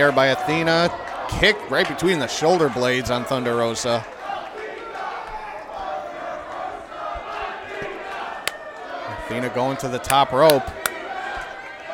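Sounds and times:
speech: 0.0s - 4.2s, 9.3s - 10.8s
wrestling crowd chanting a wrestler's name: 0.0s - 11.9s.

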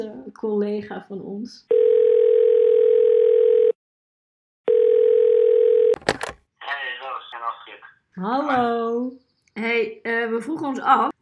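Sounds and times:
speech: 0.0s - 1.8s, 8.2s - 11.2s
ringing tone of an outgoing telephone call: 1.7s - 3.8s, 4.7s - 6.0s.

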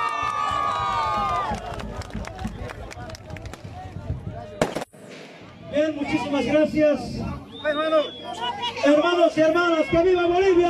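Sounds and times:
audience applause: 0.0s - 3.6s
speech: 6.1s - 10.6s.

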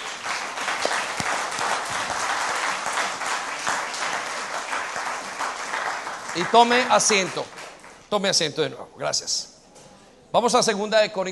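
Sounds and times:
audience applause: 0.0s - 8.0s
speech: 6.4s - 9.5s, 10.3s - 11.3s.

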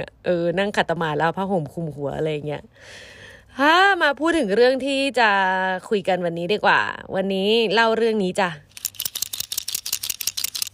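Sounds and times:
speech: 0.0s - 8.7s
marker pen squeaking and scratching across a surface: 8.8s - 10.7s.

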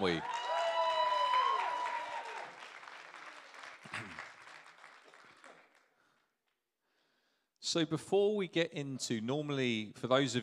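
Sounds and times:
speech: 0.0s - 0.3s, 7.7s - 10.4s
people whooping and cheering: 0.0s - 2.9s
audience hand clapping: 0.0s - 6.3s.

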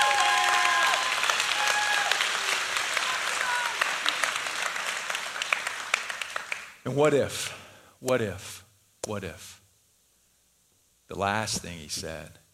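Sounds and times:
audience clapping: 0.0s - 6.8s
speech: 6.8s - 9.6s, 11.1s - 12.4s.

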